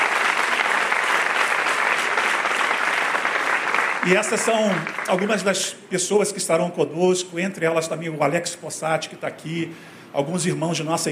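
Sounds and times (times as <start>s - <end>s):
audience applauding: 0.0s - 5.6s
speech: 4.0s - 11.1s.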